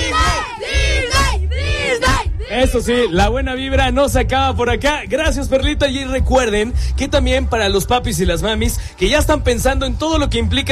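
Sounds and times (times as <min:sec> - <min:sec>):
group of children shouting together: 0:00.0 - 0:03.1
speech: 0:02.6 - 0:10.6.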